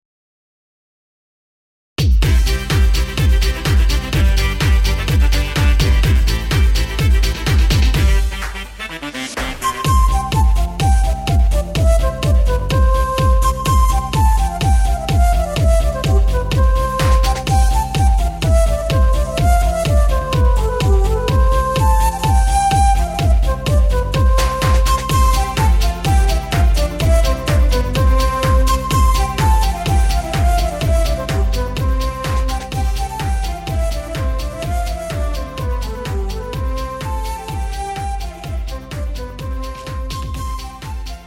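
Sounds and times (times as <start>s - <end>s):
quickstep music: 2.0s - 41.2s.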